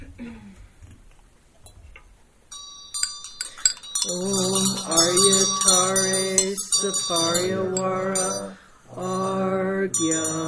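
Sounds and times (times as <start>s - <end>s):
faint low voice: 0.0s - 0.6s
ritual vajra and bell ringing: 2.5s - 10.4s
speech: 6.9s - 9.2s.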